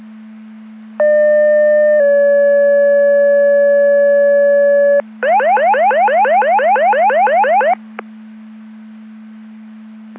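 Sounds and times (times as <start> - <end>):
siren: 1.0 - 7.8.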